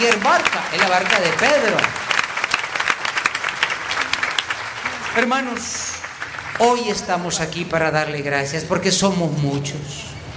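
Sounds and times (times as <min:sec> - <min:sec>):
church congregation applause during a service: 0:00.0 - 0:08.1
speech: 0:00.1 - 0:02.1, 0:05.2 - 0:06.0, 0:06.6 - 0:10.1.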